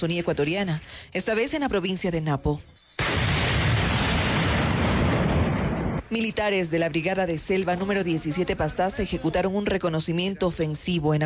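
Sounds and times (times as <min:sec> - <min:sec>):
speech: 0:00.0 - 0:03.2, 0:06.1 - 0:11.2
military explosion destroying illegal mining machinery in the Ecuadorian Amazon: 0:03.0 - 0:06.1.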